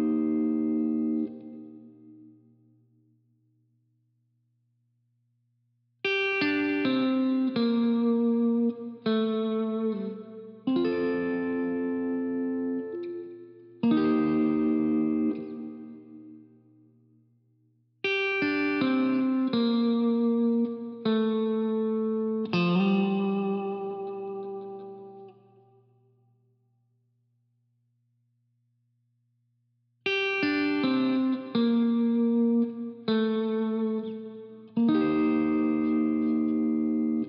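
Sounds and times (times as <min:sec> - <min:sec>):
guitar fills: 0:00.0 - 0:02.5, 0:06.0 - 0:16.9, 0:18.0 - 0:25.8, 0:30.1 - 0:37.2.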